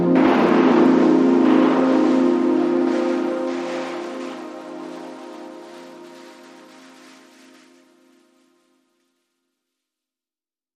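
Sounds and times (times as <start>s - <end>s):
glitchy sting: 0.1s - 8.6s.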